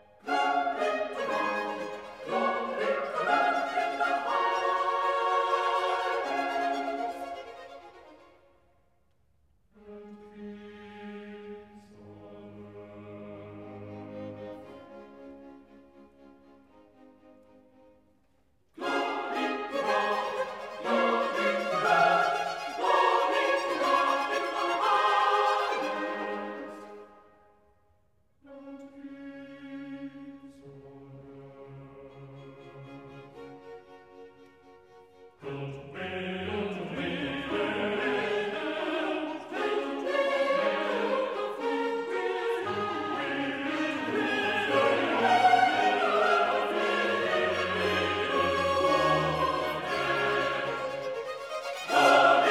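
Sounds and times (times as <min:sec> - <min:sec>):
chorus singing: 0:00.0 - 0:08.4, 0:09.8 - 0:15.4, 0:18.8 - 0:27.3, 0:35.3 - 0:52.5.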